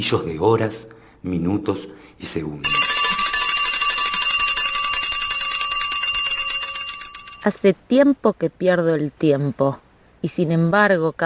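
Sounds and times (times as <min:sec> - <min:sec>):
speech: 0:00.0 - 0:02.9, 0:07.4 - 0:11.2
mechanical alarm clock ringing: 0:02.6 - 0:07.6.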